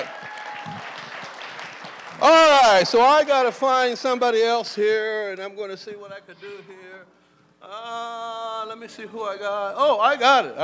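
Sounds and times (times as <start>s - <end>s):
audience clapping: 0.0s - 4.2s
speech: 2.2s - 10.6s.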